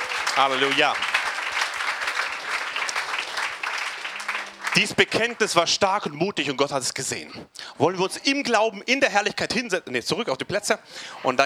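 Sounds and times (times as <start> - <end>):
audience applause: 0.0 - 6.1
speech: 0.4 - 1.1, 4.8 - 11.4.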